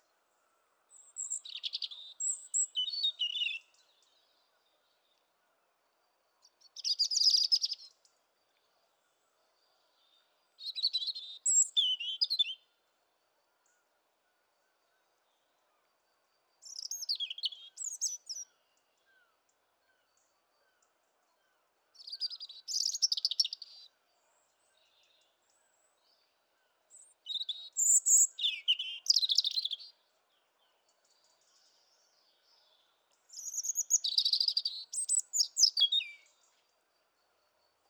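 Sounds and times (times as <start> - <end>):
European robin Erithacus rubecula singing: 0.9 - 4.1, 6.6 - 7.9, 10.6 - 12.6, 16.6 - 19.3, 22.0 - 23.9, 26.9 - 30.0, 31.4 - 36.6.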